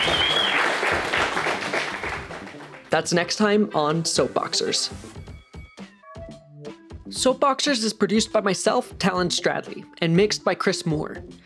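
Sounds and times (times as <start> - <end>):
audience round of applause: 0.0 - 3.0
speech: 2.9 - 5.3, 7.2 - 11.4.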